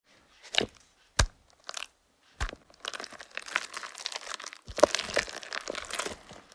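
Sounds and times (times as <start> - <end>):
stirring cake batter: 2.4 - 6.5.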